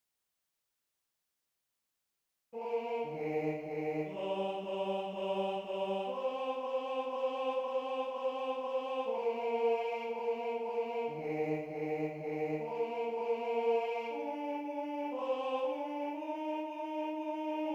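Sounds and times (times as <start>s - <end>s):
bass tenore singing: 2.6s - 14.2s, 15.2s - 17.7s.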